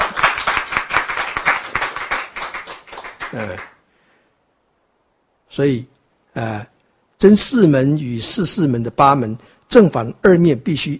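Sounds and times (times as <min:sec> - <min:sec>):
audience clapping hands: 0:00.0 - 0:03.8
speech: 0:03.3 - 0:03.8, 0:05.5 - 0:10.9.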